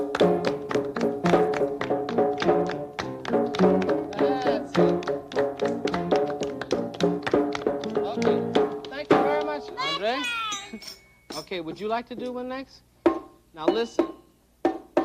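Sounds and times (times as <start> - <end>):
hands clapping a rhythm: 0.0 - 10.2
sustained tonal music-like layer: 0.0 - 11.5
speech: 11.7 - 12.9, 13.6 - 14.2.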